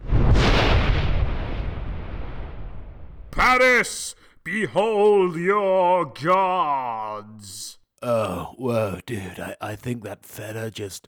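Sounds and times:
thunder sound effect: 0.0 - 3.4
speech: 3.4 - 11.0.

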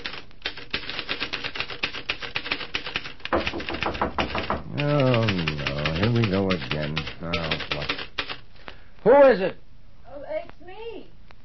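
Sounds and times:
typing on a manual typewriter: 0.0 - 8.4
knocking on a door: 3.3 - 5.4
speech: 9.0 - 9.6.

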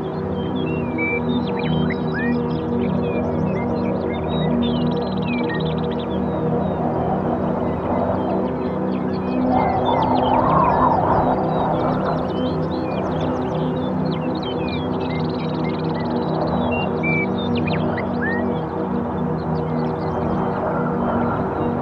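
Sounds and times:
birds chirping and trilling: 0.1 - 21.8
steady low wind roar: 5.7 - 15.0, 18.7 - 21.8.

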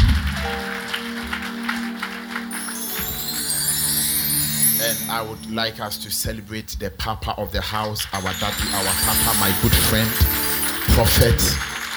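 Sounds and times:
audience clapping hands: 0.0 - 5.0, 8.2 - 11.9
speech: 5.0 - 11.7.

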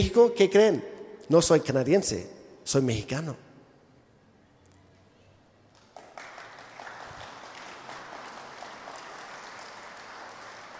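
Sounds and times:
speech: 0.0 - 3.5
audience applause: 5.8 - 10.7.

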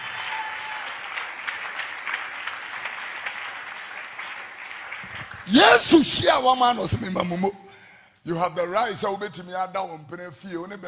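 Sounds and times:
crowd clapping hands: 0.0 - 7.3
speech: 5.5 - 7.6, 8.2 - 10.8.

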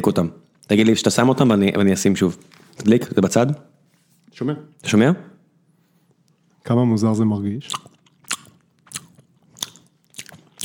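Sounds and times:
speech: 0.0 - 3.7, 4.3 - 5.3, 6.6 - 7.9
fingers being licked: 7.6 - 10.6.

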